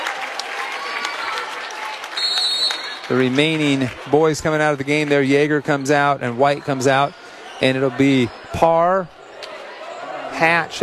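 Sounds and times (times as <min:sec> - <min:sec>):
audience applause in an arena at a basketball game: 0:00.0 - 0:05.6
speech: 0:03.1 - 0:09.2, 0:10.4 - 0:10.8.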